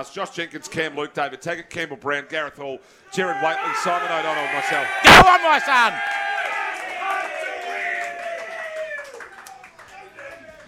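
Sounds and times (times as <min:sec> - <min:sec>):
speech: 0:00.0 - 0:06.2
large crowd cheering: 0:03.2 - 0:10.6.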